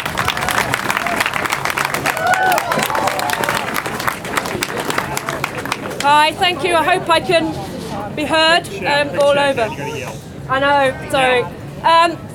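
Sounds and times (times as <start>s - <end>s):
audience applause: 0.0s - 6.4s
speech: 6.1s - 7.6s, 8.2s - 12.3s.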